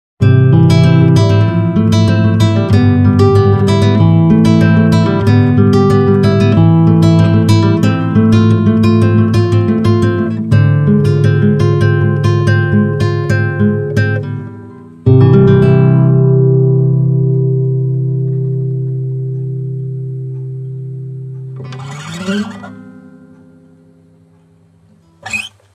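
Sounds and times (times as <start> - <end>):
guitar: 0.2 - 25.7.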